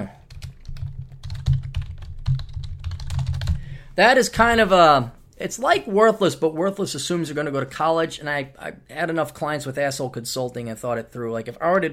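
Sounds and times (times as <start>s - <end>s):
computer keyboard typing: 0.3s - 3.7s
speech: 4.0s - 11.9s.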